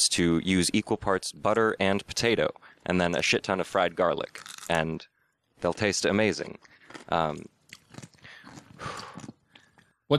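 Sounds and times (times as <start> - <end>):
speech: 0.0 - 9.3
biting and chewing pickles: 4.2 - 4.8, 5.7 - 9.8.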